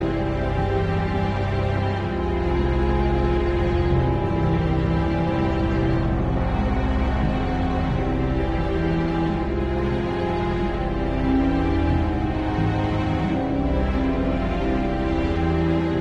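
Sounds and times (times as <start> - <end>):
tense music loop: 0.0 - 15.9.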